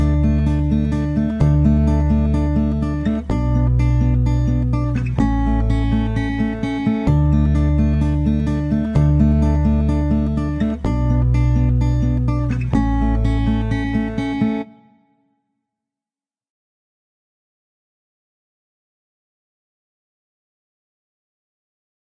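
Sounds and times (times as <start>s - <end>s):
acoustic music: 0.0s - 15.2s.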